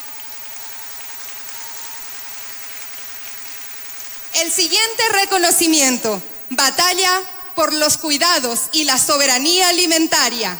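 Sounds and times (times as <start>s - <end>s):
crowd applause: 0.0s - 4.3s
speech: 4.4s - 10.5s.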